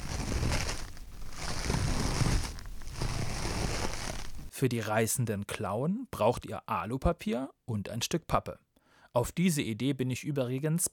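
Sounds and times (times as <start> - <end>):
toilet paper rubbed between hands mimicking footsteps in snow: 0.0 - 4.5
speech: 4.6 - 10.9.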